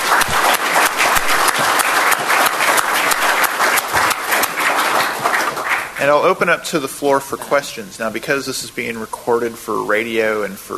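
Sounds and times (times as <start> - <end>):
audience applause: 0.0 - 6.4
speech: 6.0 - 10.7.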